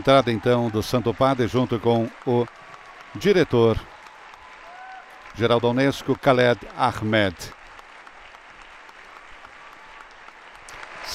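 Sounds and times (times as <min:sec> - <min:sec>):
speech: 0:00.0 - 0:03.9, 0:05.4 - 0:07.6
audience applauding the Pope's arrival at UNESCO headquarters in Paris: 0:00.0 - 0:11.1.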